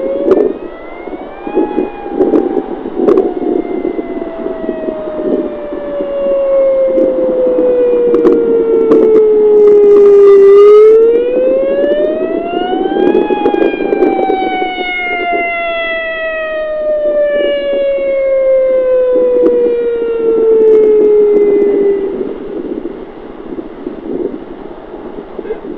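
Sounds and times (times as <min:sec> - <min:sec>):
single tone attack siren: 0:00.0 - 0:24.2.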